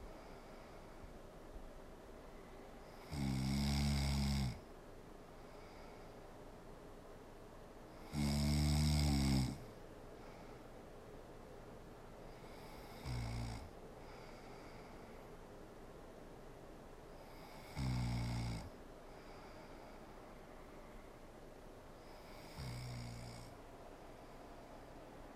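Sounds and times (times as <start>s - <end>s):
woman snoring: 2.9s - 4.6s, 8.0s - 9.7s, 12.4s - 14.8s, 17.2s - 18.8s, 22.0s - 23.5s.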